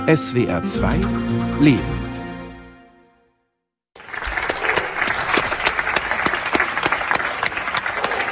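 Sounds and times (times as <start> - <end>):
speech: 0.1 - 2.1
people applauding: 4.0 - 8.2.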